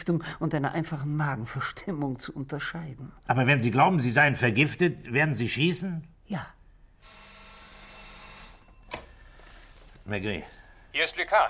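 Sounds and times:
speech: 0.0s - 7.2s, 10.1s - 11.4s
telephone bell ringing: 7.0s - 9.8s.

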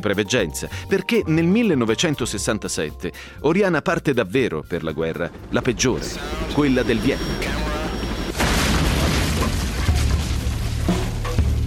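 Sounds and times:
speech: 0.0s - 7.7s
explosion sound effect: 8.3s - 11.6s.

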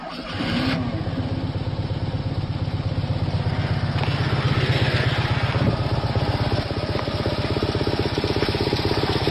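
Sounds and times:
old car engine starting and idling roughly: 0.0s - 9.2s.

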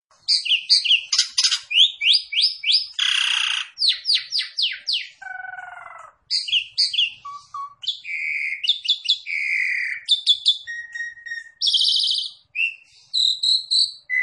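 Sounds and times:
Javan pied starling calling: 0.2s - 14.2s.

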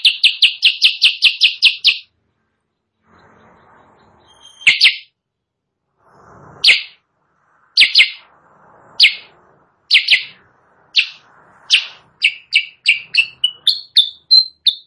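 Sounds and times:
sooty-headed bulbul chirping, training song for caged birds: 0.0s - 2.1s, 4.0s - 5.1s, 6.6s - 7.0s, 7.8s - 8.3s, 9.0s - 9.3s, 9.9s - 14.8s.

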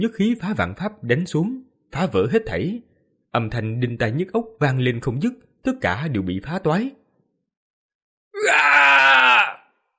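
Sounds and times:
speech: 0.0s - 7.0s
man shouting loudly in a frenzy: 8.4s - 9.6s.

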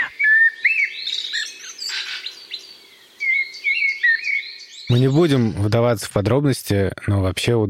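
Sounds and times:
common blackbird singing: 0.0s - 6.0s
speech: 4.9s - 7.6s.

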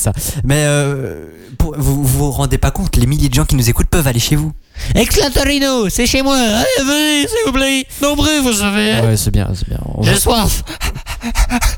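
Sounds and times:
speech: 0.0s - 11.7s
dog panting: 10.6s - 11.7s.

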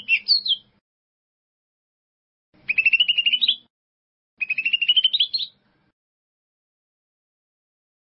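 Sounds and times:
bird song: 0.0s - 0.8s, 2.6s - 3.7s, 4.4s - 5.7s.

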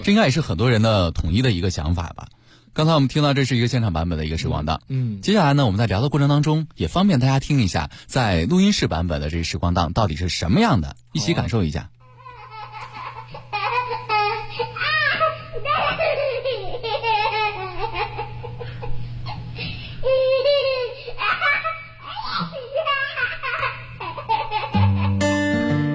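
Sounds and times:
speech: 0.0s - 12.0s
sampled baby laughter in a song: 12.1s - 25.3s.

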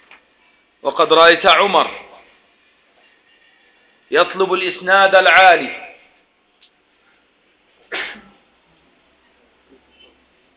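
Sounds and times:
speech: 0.8s - 2.0s, 4.1s - 5.8s
sneeze: 7.9s - 8.5s.

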